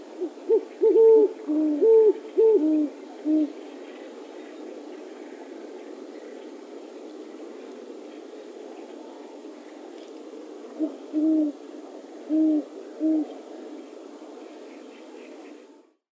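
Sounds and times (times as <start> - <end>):
great horned owl hooting: 0.2 - 3.6, 10.8 - 11.6, 12.2 - 13.3.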